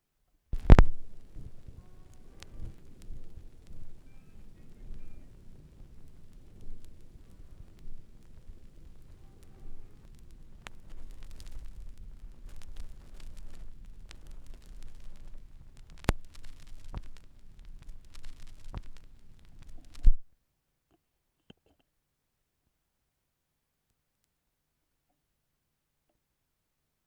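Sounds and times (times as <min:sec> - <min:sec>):
vinyl record noise: 0:00.6 - 0:20.3.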